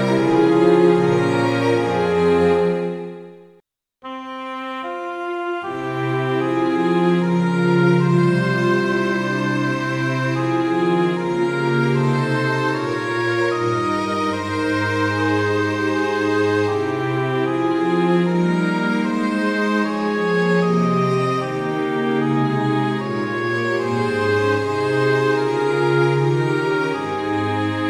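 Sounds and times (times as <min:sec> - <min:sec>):
oboe playing an amen in F minor: 0:00.0 - 0:03.4, 0:04.0 - 0:27.8
strings playing an amen in F minor: 0:00.0 - 0:03.4, 0:05.6 - 0:27.8
bassoon playing an amen in F minor: 0:00.0 - 0:27.8
clarinet playing an amen in F minor: 0:00.0 - 0:27.8
trumpet playing an amen in F minor: 0:00.0 - 0:27.8.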